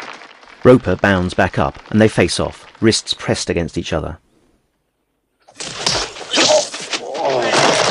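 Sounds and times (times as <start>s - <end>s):
speech: 0.6s - 4.2s
heavy punches in a fistfight: 5.5s - 7.8s.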